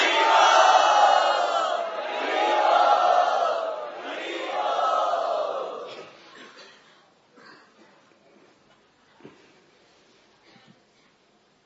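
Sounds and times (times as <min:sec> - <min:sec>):
crowd loudly chanting in welcome: 0:00.0 - 0:06.0.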